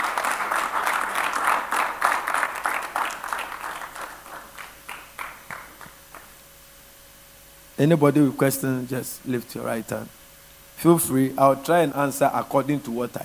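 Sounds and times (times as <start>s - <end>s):
audience applause: 0.0s - 6.3s
speech: 7.8s - 10.2s, 10.8s - 13.2s.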